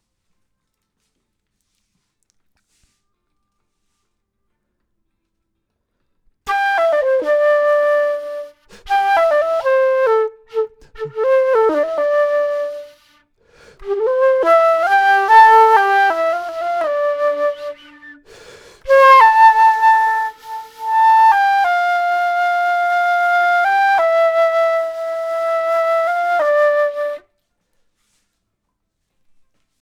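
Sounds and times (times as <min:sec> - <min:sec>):
flute: 0:06.5 - 0:27.6.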